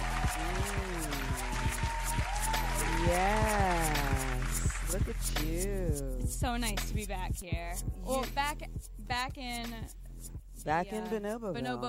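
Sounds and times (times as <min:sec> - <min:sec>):
voices whooping and calling out: 0:00.0 - 0:04.6
crowd applauding: 0:00.0 - 0:05.6
speech: 0:05.0 - 0:11.8.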